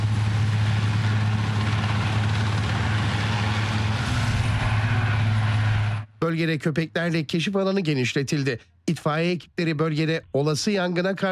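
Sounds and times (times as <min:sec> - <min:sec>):
rescue helicopter rotor and engine drone at a search-and-rescue scene: 0:00.0 - 0:06.1
speech: 0:06.2 - 0:11.3.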